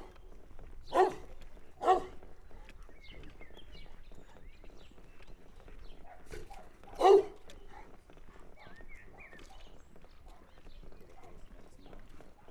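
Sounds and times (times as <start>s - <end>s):
village guard dog in a farmyard: 0.9s - 2.7s, 6.0s - 11.7s.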